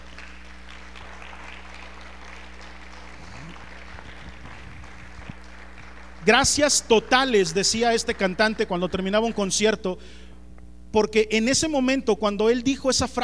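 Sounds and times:
audience applause: 0.0s - 9.3s
speech: 6.3s - 10.2s, 10.9s - 13.2s.

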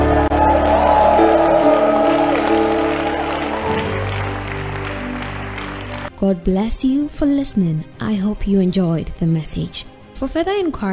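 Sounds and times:
audience shouting praise to the Lord: 0.0s - 6.1s
speech: 6.2s - 10.9s.

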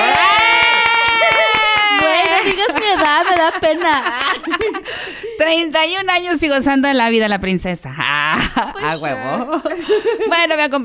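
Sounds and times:
applause: 0.0s - 4.7s
laughter: 0.0s - 5.4s, 8.1s - 10.6s
speech: 3.5s - 10.8s.

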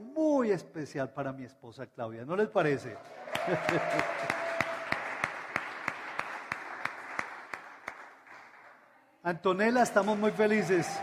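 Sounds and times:
speech: 0.4s - 4.5s, 9.2s - 11.0s
laughter: 3.0s - 4.6s
audience applause: 3.0s - 8.8s, 9.8s - 11.0s.

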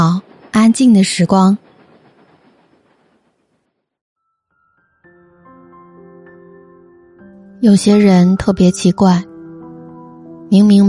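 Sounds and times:
speech: 0.0s - 1.6s, 7.6s - 9.3s, 10.5s - 10.8s
train running on rails sound effect: 0.0s - 4.0s, 7.6s - 9.3s.

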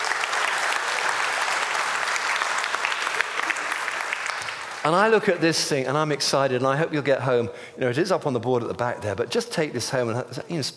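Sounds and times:
audience applause: 0.0s - 5.4s
speech: 4.8s - 10.7s.

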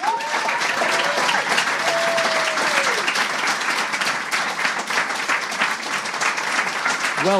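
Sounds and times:
audience whooping: 0.0s - 3.3s
audience applause for the Conan writers: 0.0s - 7.3s.

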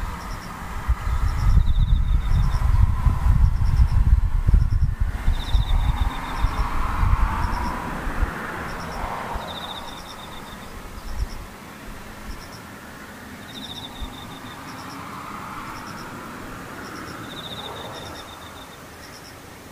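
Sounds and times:
low rumble: 0.0s - 8.3s
insects chirping: 0.0s - 19.7s.

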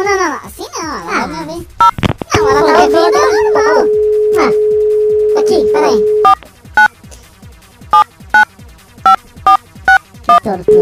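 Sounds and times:
telephone number being dialed with touch-tone beeps: 1.8s - 6.9s, 9.1s - 10.7s.

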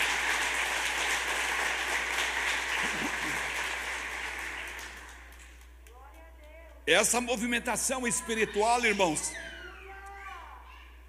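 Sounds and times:
audience applauding: 0.0s - 5.7s
speech: 6.9s - 9.5s.

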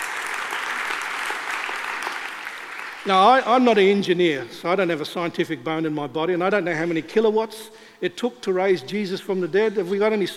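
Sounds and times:
audience clapping: 0.0s - 3.8s
speech: 3.0s - 10.3s.

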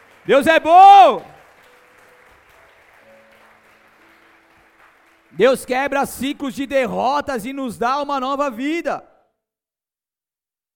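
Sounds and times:
audience applause: 0.0s - 6.0s
speech: 0.2s - 1.3s, 5.4s - 9.1s.

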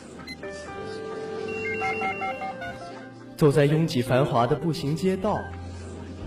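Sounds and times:
office telephone ringing: 1.4s - 3.0s
speech: 1.9s - 5.6s.

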